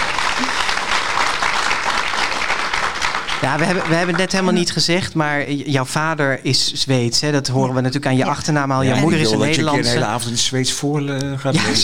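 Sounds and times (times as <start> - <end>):
audience applause: 0.0 - 4.9
speech: 3.4 - 11.8.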